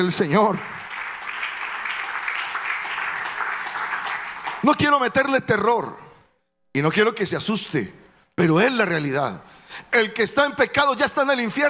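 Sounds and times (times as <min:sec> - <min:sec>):
speech: 0:00.0 - 0:00.8, 0:04.6 - 0:06.0, 0:06.8 - 0:11.6
audience applauding: 0:00.6 - 0:04.8.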